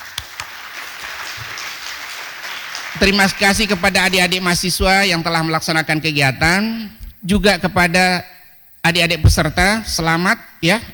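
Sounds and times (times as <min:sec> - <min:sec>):
audience applause at a formal event honouring the head of the RRI radio network: 0:00.0 - 0:04.1
speech: 0:03.0 - 0:10.9
sharp taps: 0:07.0 - 0:07.6, 0:09.2 - 0:10.2.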